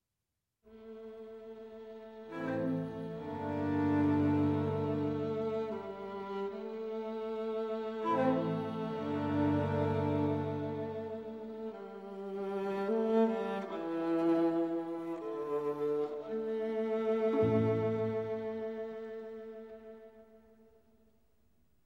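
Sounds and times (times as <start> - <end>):
very slow string quartet in F major: 0.7 - 20.5.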